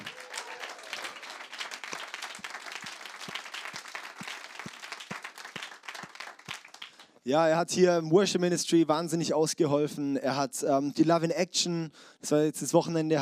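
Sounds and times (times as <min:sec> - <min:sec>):
audience applause: 0:00.0 - 0:07.1
speech: 0:07.2 - 0:13.2.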